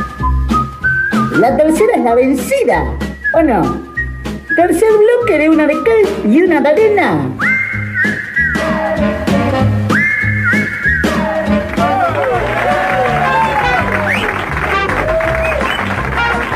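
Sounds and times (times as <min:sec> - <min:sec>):
rising and falling whistles: 0:00.0 - 0:01.7, 0:03.0 - 0:06.0, 0:07.4 - 0:16.2
speech: 0:01.4 - 0:03.9, 0:04.6 - 0:07.5
cheering voices: 0:08.2 - 0:16.5
audience applause: 0:10.6 - 0:16.5.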